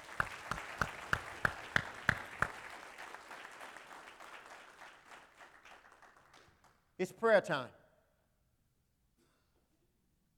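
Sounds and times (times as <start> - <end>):
audience applauding: 0.0 - 6.8
speech: 7.0 - 7.8.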